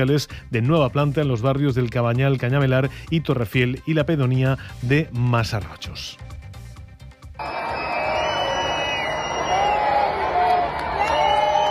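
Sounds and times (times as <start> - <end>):
speech: 0.0 - 6.4
concert audience shouting at Palau de les Arts de Valencia: 7.4 - 11.7.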